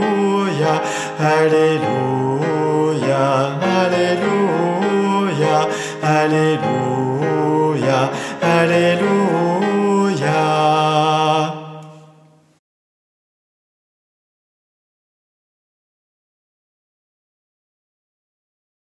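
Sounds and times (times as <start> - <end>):
alto voices singing an alleluia guide part: 0.0 - 12.2.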